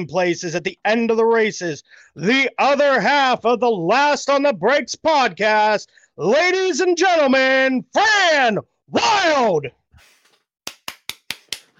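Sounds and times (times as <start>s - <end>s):
speech: 0.0s - 9.8s
one person clapping: 10.6s - 11.7s.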